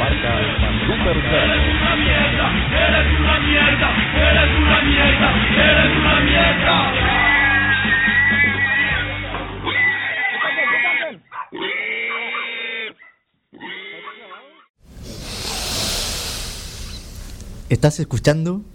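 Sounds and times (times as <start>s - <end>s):
speech: 0.1s - 7.3s, 17.7s - 18.6s
pigs squealing and grunting: 7.0s - 14.7s
broad hissing noise: 14.9s - 18.6s.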